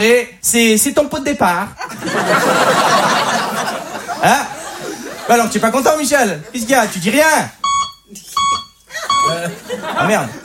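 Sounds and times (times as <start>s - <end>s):
speech: 0.0s - 3.5s, 4.2s - 4.6s, 5.3s - 8.4s, 9.2s - 10.4s
laughter: 1.8s - 7.2s, 8.1s - 10.4s
electronic beep: 7.6s - 9.4s.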